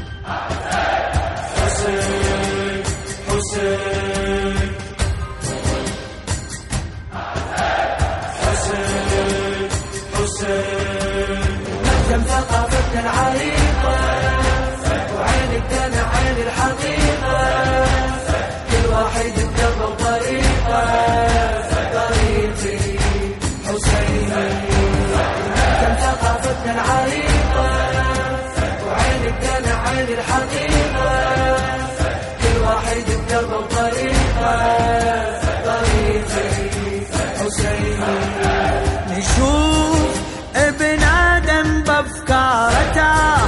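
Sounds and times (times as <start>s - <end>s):
Arabic nawha chant: 0.2s - 6.3s, 7.1s - 41.4s, 42.5s - 43.4s.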